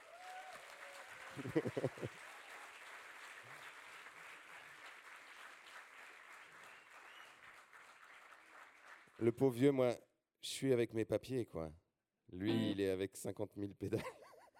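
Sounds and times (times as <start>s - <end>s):
audience applause: 0.0s - 9.3s
laughter: 1.3s - 2.2s
speech: 1.3s - 2.3s, 9.2s - 14.2s.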